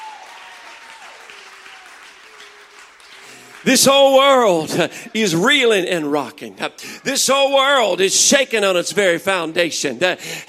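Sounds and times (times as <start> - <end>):
audience clapping hands: 0.0 - 5.5
speech: 3.6 - 10.4.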